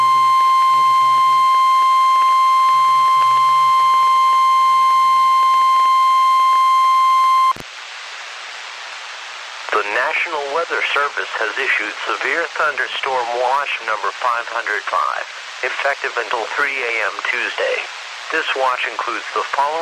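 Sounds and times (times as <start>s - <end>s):
weather radio alert tone: 0.0s - 7.6s
hissing static: 0.0s - 19.8s
speech: 10.8s - 19.8s.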